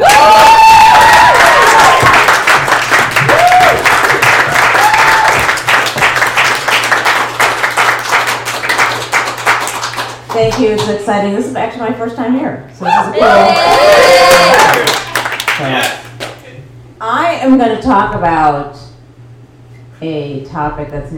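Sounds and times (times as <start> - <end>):
audience whoops and shouts: 0.0 - 2.2, 3.2 - 3.9, 4.7 - 5.5, 12.8 - 14.9
comedy show audience applauding to welcome a comedian on stage: 0.0 - 11.0, 13.7 - 16.5
speech: 10.6 - 14.1, 15.6 - 16.0, 17.4 - 18.8, 20.0 - 21.1.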